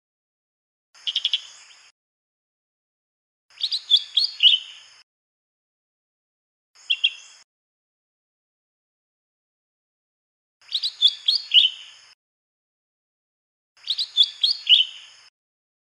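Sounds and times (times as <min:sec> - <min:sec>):
Lesser green leafbird song of rapid chirping phrases with slurred notes in the wild: 0:01.0 - 0:01.9, 0:03.5 - 0:05.0, 0:06.8 - 0:07.5, 0:10.6 - 0:12.2, 0:13.8 - 0:15.3.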